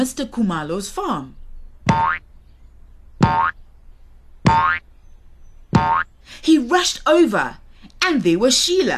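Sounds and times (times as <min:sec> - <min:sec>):
speech: 0:00.0 - 0:02.3, 0:03.2 - 0:03.6, 0:04.5 - 0:04.9, 0:05.8 - 0:08.9
springy cartoon boings of pig bouncing on tractor tube: 0:01.9 - 0:02.2, 0:03.2 - 0:03.6, 0:04.5 - 0:04.8, 0:05.8 - 0:06.1.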